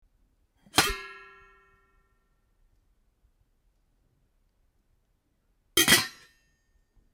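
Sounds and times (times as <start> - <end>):
pots opened and closed: 0.7 - 1.4, 5.8 - 6.3.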